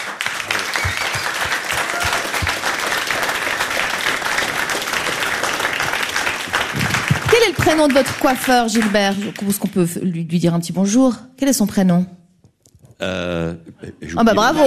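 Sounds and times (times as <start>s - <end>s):
audience applause: 0.0s - 9.7s
speech: 7.7s - 12.2s, 13.0s - 14.6s.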